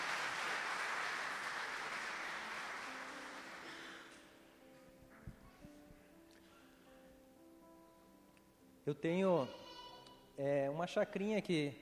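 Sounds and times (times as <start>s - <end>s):
audience applauding: 0.0s - 4.1s
speech: 8.9s - 9.6s, 10.4s - 11.8s.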